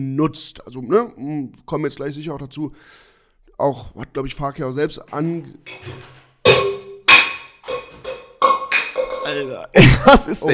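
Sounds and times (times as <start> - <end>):
speech: 0.0 - 6.2, 9.3 - 10.5
cup falling and clattering: 5.7 - 9.6
laughter: 9.8 - 10.5.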